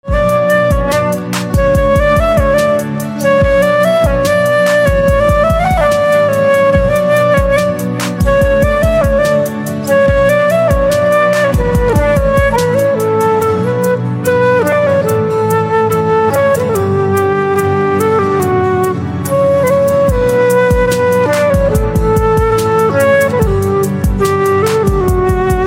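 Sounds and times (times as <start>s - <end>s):
flute ringtone: 0.0s - 25.6s.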